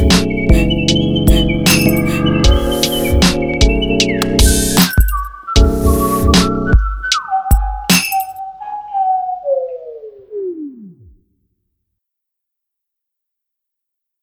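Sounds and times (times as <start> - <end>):
instrumental jingle: 0.0 - 11.0.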